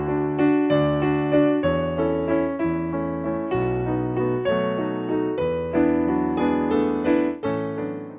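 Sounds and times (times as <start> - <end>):
piano: 0.0 - 8.1.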